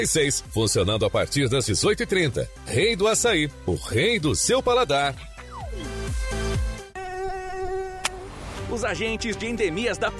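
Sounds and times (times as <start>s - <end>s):
speech: 0.0s - 5.9s, 8.8s - 10.1s
dengue mosquito buzzing: 5.7s - 8.3s.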